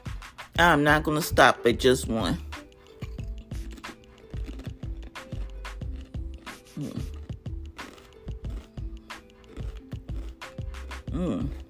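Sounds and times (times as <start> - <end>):
speech: 0.6 - 2.5, 11.2 - 11.6
crunching potato chips: 2.8 - 11.6.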